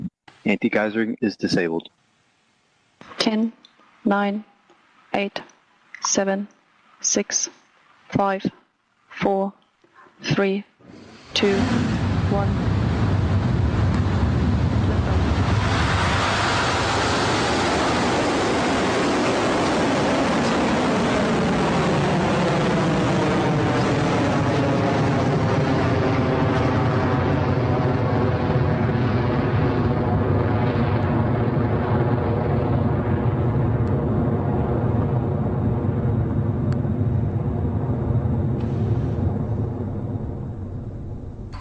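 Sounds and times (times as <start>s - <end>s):
speech: 0.4s - 2.0s, 3.0s - 4.5s, 5.1s - 8.6s, 9.2s - 9.6s, 10.2s - 12.7s
Electron rocket liftoff roar: 10.8s - 41.5s.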